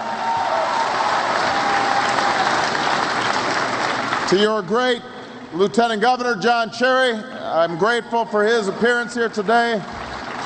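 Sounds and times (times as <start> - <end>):
audience applause: 0.0 - 4.6, 9.4 - 10.4
speech: 4.3 - 10.0.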